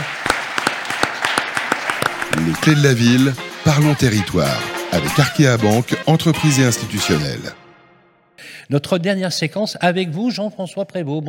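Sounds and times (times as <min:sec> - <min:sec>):
audience applause: 0:00.0 - 0:05.5
speech: 0:02.4 - 0:07.6, 0:08.7 - 0:11.2.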